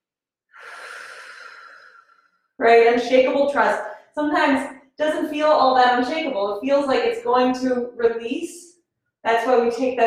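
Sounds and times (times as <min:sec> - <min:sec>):
breathing during a yoga pose: 0:00.6 - 0:02.4, 0:03.8 - 0:04.2
speech: 0:02.6 - 0:10.0.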